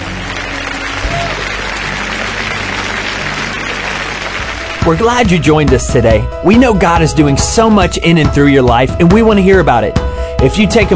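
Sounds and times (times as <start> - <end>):
crowd applause: 0.0 - 5.7
speech: 4.9 - 10.9.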